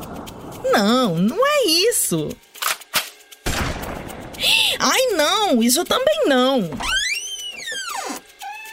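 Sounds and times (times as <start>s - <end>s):
speech: 0.8s - 2.5s, 4.5s - 7.1s
door creaking: 6.7s - 8.7s.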